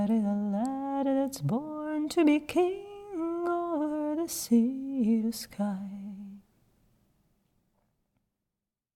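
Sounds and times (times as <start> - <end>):
person almost singing a song: 0.0 - 6.4.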